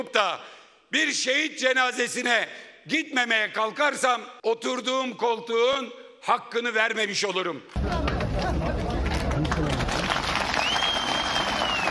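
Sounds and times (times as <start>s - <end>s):
speech: 0.0s - 8.1s
crowd applauding at a funeral: 7.8s - 11.8s.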